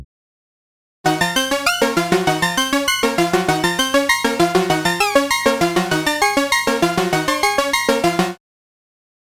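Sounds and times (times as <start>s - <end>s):
Moog Modular synthesizer: 1.1s - 8.4s.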